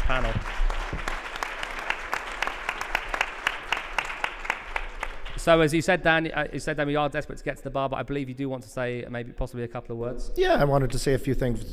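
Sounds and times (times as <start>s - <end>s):
round of applause: 0.0s - 5.8s
speech: 0.1s - 1.1s, 5.4s - 11.7s.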